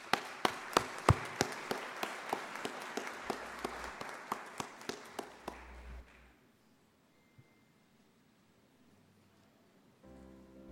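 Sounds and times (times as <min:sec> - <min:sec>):
applause for an honoree, evenly spaced claps: 0:00.0 - 0:06.3.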